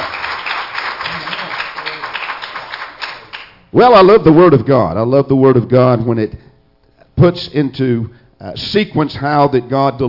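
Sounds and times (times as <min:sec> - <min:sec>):
audience hand clapping: 0:00.0 - 0:03.6
speech: 0:03.7 - 0:06.4, 0:07.2 - 0:10.0.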